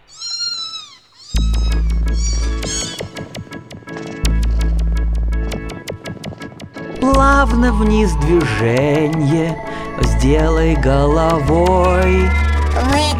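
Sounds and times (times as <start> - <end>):
cat meowing: 0.0 - 3.2
rhythmic music with a steady pulsing beat and heavy bass: 1.4 - 13.1
speech: 7.4 - 13.1.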